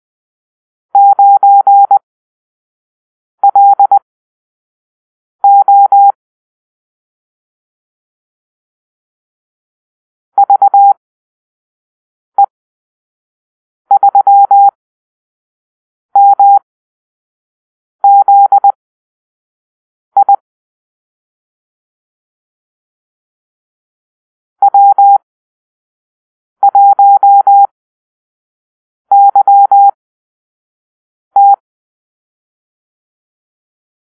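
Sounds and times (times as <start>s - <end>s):
morse code call-sign beeps: 1.0s - 2.0s, 3.5s - 4.0s, 5.4s - 6.2s, 10.4s - 11.0s, 13.9s - 14.8s, 16.2s - 16.6s, 18.0s - 18.8s, 24.6s - 25.2s, 26.6s - 27.7s, 29.1s - 30.0s, 31.4s - 31.6s.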